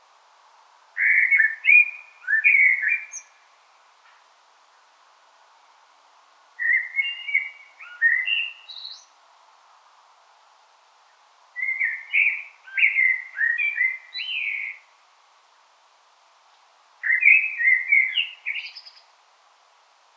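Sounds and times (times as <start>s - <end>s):
common blackbird warbling song: 1.0s - 3.4s, 6.6s - 9.1s, 11.6s - 14.9s, 17.0s - 19.1s.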